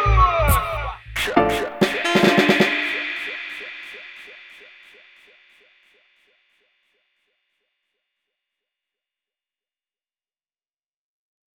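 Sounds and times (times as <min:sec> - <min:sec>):
reggae soundtrack music: 0:01.3 - 0:03.5.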